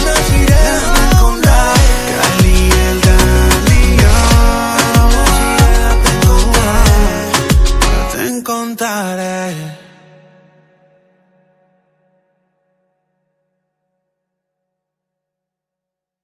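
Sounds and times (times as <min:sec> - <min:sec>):
reggaeton music: 0:00.0 - 0:10.4.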